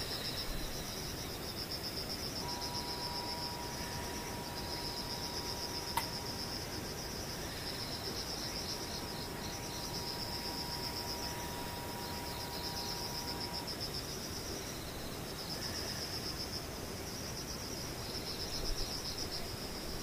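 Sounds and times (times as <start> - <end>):
insects buzzing and trilling: 0.0 - 20.0
faint thin tone: 2.4 - 6.0.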